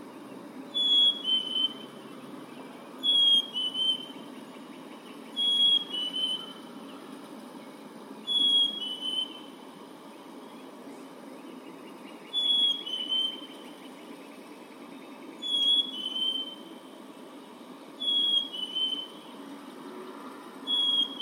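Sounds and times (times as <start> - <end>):
Black-capped chickadee calling: 0.7 - 7.0, 8.2 - 9.6, 11.5 - 14.0, 15.3 - 16.8, 18.0 - 19.4, 20.7 - 21.2.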